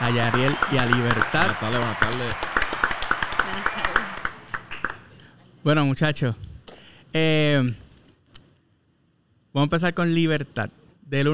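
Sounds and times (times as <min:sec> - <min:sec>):
applause: 0:00.0 - 0:05.1
speech: 0:00.1 - 0:02.5, 0:05.6 - 0:06.5, 0:07.1 - 0:07.8, 0:09.5 - 0:11.3.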